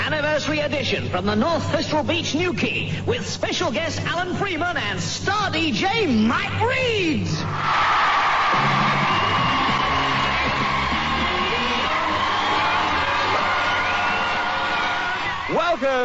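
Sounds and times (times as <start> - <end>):
speech: 0.4 - 9.2, 15.5 - 16.0
big beach crowd cheering: 7.5 - 16.0
whoops and shouted yells: 7.6 - 16.0.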